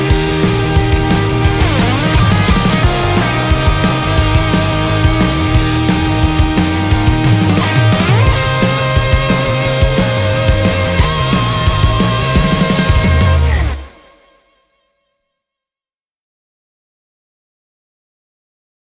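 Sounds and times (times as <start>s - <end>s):
instrumental music: 0.0s - 14.4s.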